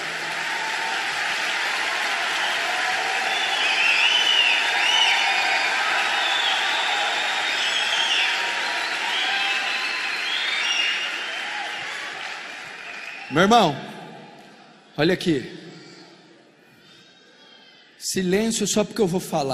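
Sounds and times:
audience applause: 0.0 - 13.6
crowd cheering: 0.0 - 14.8
high whistles: 2.4 - 12.0
speech: 13.3 - 13.9, 15.0 - 15.6, 18.1 - 19.5.

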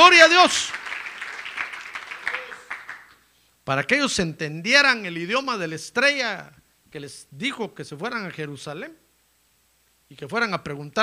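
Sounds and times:
people applauding: 0.0 - 3.2
speech: 0.1 - 0.8, 3.7 - 9.0, 10.1 - 11.0.

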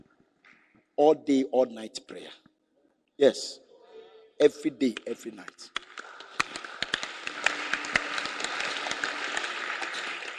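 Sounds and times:
speech: 1.0 - 2.5, 3.2 - 3.6, 4.4 - 5.8
audience clapping: 4.8 - 10.3.

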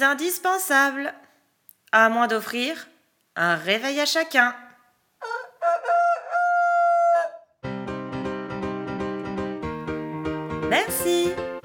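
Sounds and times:
speech: 0.0 - 1.3, 1.9 - 4.6, 10.7 - 11.5
rooster crowing: 5.2 - 7.6
bouncy tune with a steady beat: 8.2 - 11.6.

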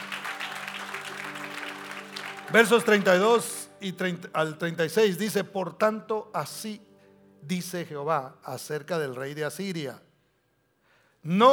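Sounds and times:
audience applause: 0.0 - 3.2
speech: 2.5 - 10.0, 11.2 - 11.5.

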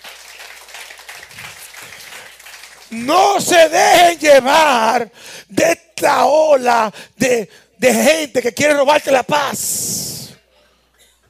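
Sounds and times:
crowd applauding: 0.0 - 3.8
speech: 2.9 - 10.0.

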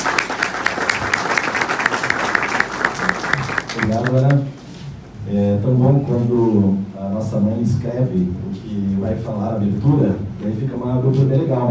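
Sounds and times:
audience applause: 0.0 - 4.4
speech: 3.9 - 4.6, 5.3 - 11.6.

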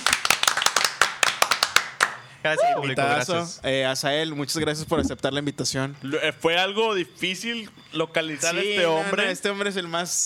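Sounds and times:
scattered hand claps: 0.0 - 2.3
speech: 2.4 - 10.2.

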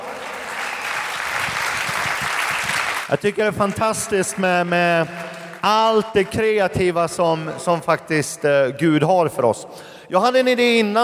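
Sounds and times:
audience applause for dancers: 0.0 - 6.6
speech: 3.1 - 11.0.

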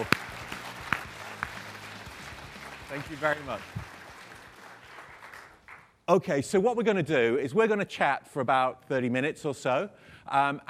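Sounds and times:
speech: 0.0 - 0.2, 2.9 - 3.9, 6.1 - 10.6
audience applause: 0.0 - 5.9.

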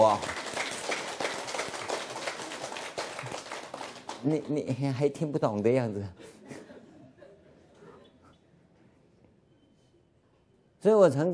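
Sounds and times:
speech: 0.0 - 0.4, 4.2 - 6.2, 10.8 - 11.3
audience applause: 0.0 - 4.4.

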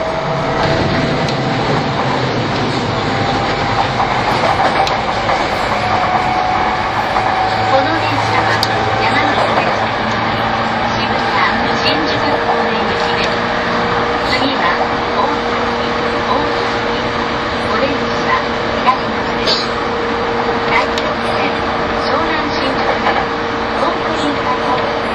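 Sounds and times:
E231 series Yamanote Line train rumble on the outer loop: 0.0 - 25.1
faint voices murmuring: 4.3 - 25.1.

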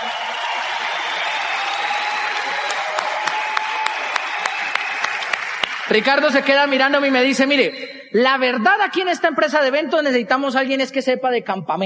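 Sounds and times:
audience applause: 0.0 - 7.1
speech: 5.9 - 11.8.

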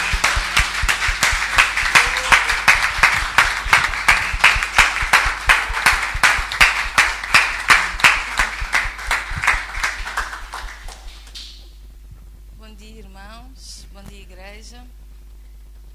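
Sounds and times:
audience applause: 0.0 - 11.6.

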